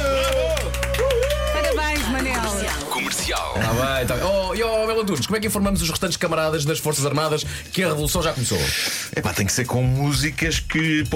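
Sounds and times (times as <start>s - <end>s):
audience clapping: 0.0s - 3.8s
speech: 3.6s - 11.1s.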